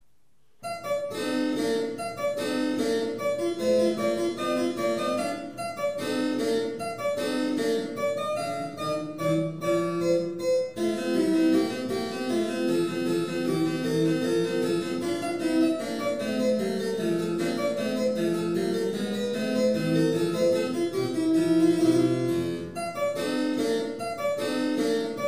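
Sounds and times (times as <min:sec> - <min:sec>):
harpsichord: 0:00.6 - 0:25.2.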